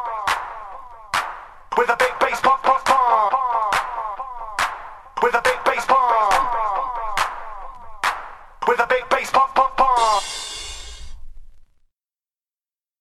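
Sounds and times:
a cappella singing: 0:00.0 - 0:01.1, 0:01.7 - 0:08.0, 0:08.6 - 0:10.4.

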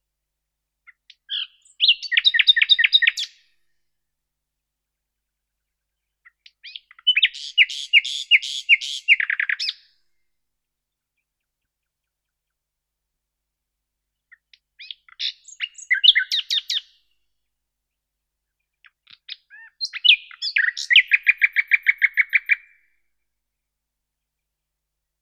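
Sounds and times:
common nightingale Luscinia megarhynchos singing: 0:00.9 - 0:03.6, 0:05.9 - 0:10.0, 0:14.3 - 0:17.1, 0:18.8 - 0:22.9.

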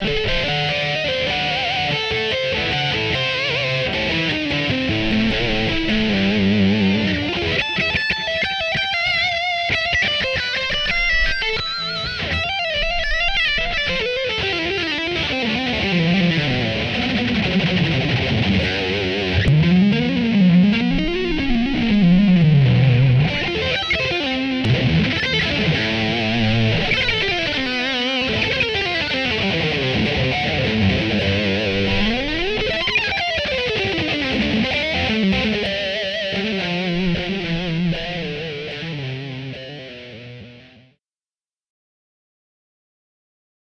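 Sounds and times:
guitar strum: 0:00.0 - 0:41.0.

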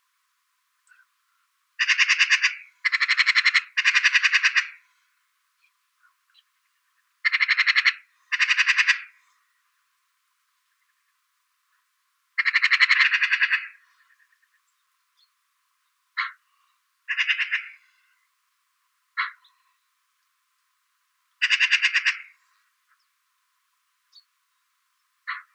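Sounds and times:
Eurasian magpie Pica pica calling: 0:01.8 - 0:04.9, 0:07.2 - 0:09.3, 0:12.4 - 0:14.6, 0:16.2 - 0:18.2, 0:19.2 - 0:19.7, 0:21.4 - 0:23.1, 0:25.2 - 0:25.5.

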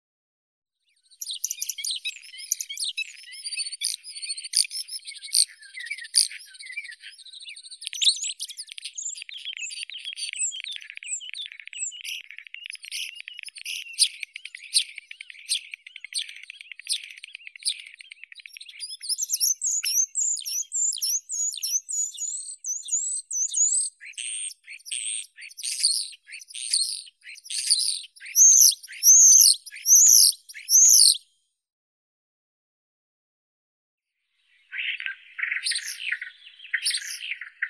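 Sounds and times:
common starling Sturnus vulgaris: 0:01.2 - 0:31.2, 0:34.7 - 0:37.6.

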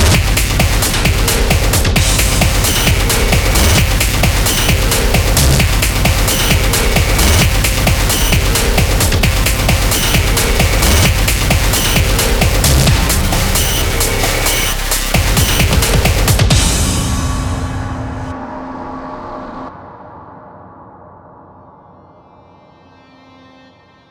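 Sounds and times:
noisy drum mix: 0:00.0 - 0:18.5.

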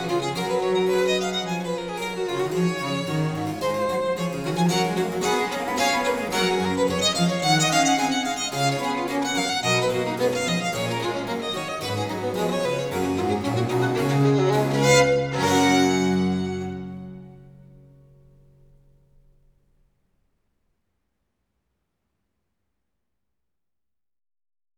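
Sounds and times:
violin and basso continuo sonata in G major presto: 0:00.0 - 0:17.8.

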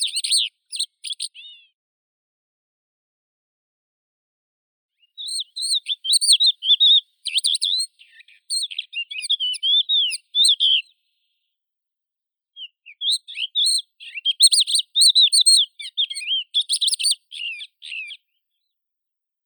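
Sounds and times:
crested lark Galerida cristata: 0:00.0 - 0:01.7, 0:05.0 - 0:11.3, 0:12.6 - 0:18.4.

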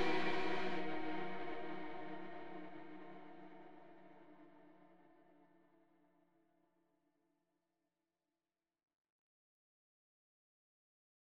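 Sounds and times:
acoustic music: 0:00.0 - 0:02.6.

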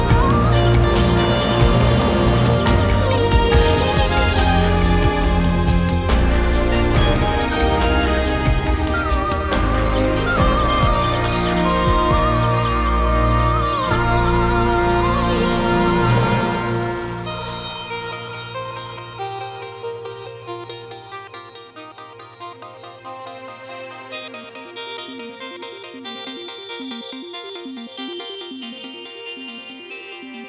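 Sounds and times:
symphonic music: 0:00.0 - 0:19.0.

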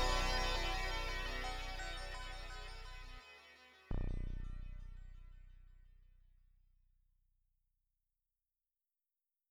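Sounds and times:
chillwave music: 0:00.0 - 0:05.0.

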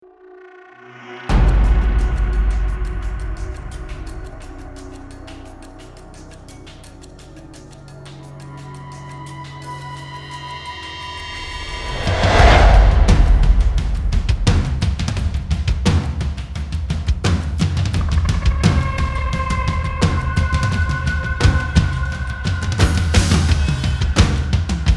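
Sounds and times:
drums: 0:01.3 - 0:05.6, 0:10.7 - 0:24.9.

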